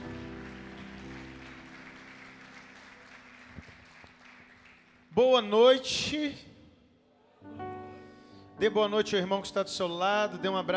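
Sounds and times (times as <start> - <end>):
audience applauding: 0.0 - 5.2
speech: 5.2 - 6.5, 8.6 - 10.7.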